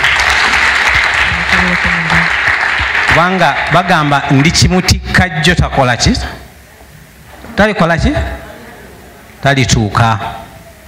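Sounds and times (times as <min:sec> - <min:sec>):
audience clapping: 0:00.0 - 0:04.8
speech: 0:03.2 - 0:06.4, 0:07.6 - 0:08.4, 0:09.4 - 0:10.4.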